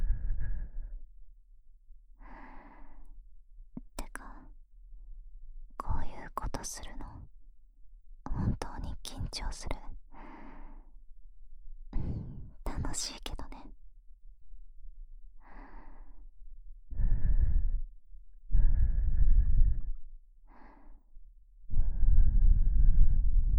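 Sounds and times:
sweet soft breathing: 0.0s - 1.0s, 2.2s - 3.2s, 10.1s - 11.0s, 11.9s - 12.7s, 15.4s - 16.3s, 16.9s - 23.5s.

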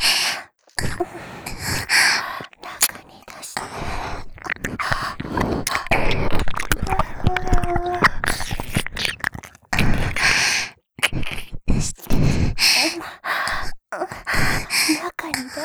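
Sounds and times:
ear licking: 0.0s - 15.6s
person moaning: 6.8s - 8.1s.

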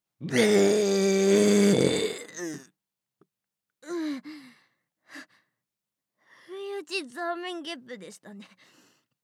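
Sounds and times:
burping: 0.2s - 2.7s.

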